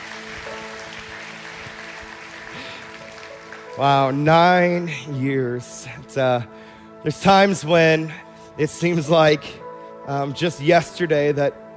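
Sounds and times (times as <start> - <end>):
audience applause: 0.0 - 4.2
speech: 3.8 - 11.6.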